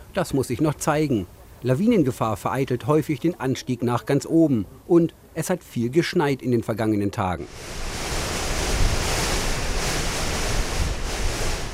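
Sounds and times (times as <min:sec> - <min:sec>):
speech: 0:00.2 - 0:07.9
storm wind: 0:07.5 - 0:11.7.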